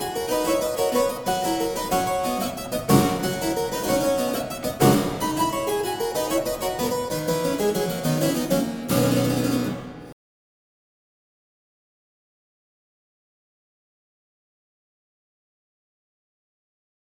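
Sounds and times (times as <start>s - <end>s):
harpsichord: 0.0s - 10.2s.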